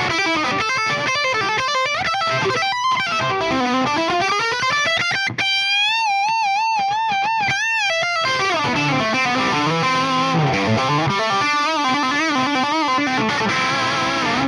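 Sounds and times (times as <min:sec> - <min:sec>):
electric guitar through 1974 Marshall Super Lead amplifier, stock bridge pickup: 0:00.0 - 0:14.4.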